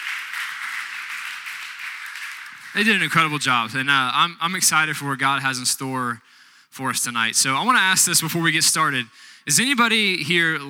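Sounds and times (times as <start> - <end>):
crowd applauding: 0.0 - 3.4
speech: 2.7 - 10.6.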